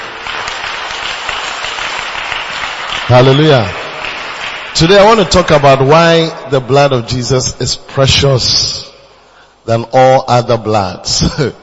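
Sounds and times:
audience clapping: 0.0 - 5.9
speech: 3.1 - 3.8, 4.8 - 8.8, 9.6 - 11.6.

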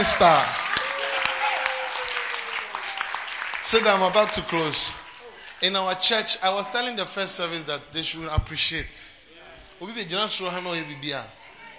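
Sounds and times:
speech: 0.0 - 0.6, 3.6 - 5.0, 5.6 - 9.2, 9.8 - 11.4
audience applause: 0.0 - 6.0.

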